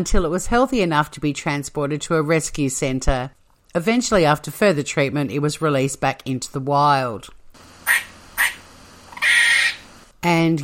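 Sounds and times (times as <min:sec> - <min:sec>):
speech: 0:00.0 - 0:08.1, 0:10.2 - 0:10.6
squirrel barking: 0:07.6 - 0:10.1.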